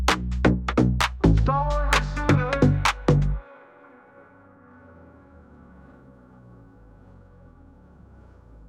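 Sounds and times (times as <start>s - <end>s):
house music: 0.0s - 3.4s
pop rap: 1.0s - 4.1s.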